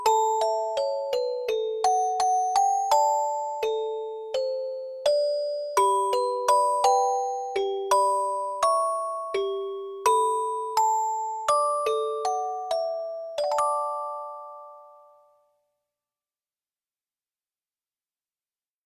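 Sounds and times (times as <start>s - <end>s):
music box song: 0.0s - 15.6s.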